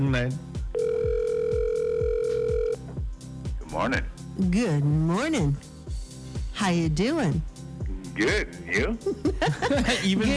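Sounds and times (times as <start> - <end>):
speech: 0.0 - 0.9, 3.7 - 5.7, 6.6 - 7.5, 8.2 - 10.3
telephone tone as a radio station calls a contest winner: 0.8 - 2.9
laughter: 9.0 - 10.3.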